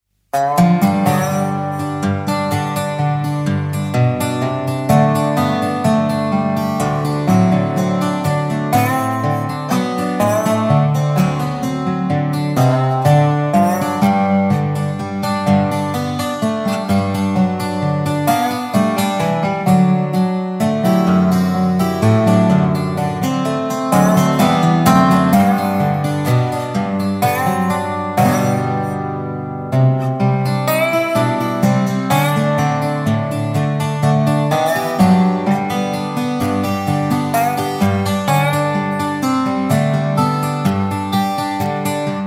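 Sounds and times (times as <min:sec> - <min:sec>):
dobro guitar playing: 0:00.3 - 0:42.2.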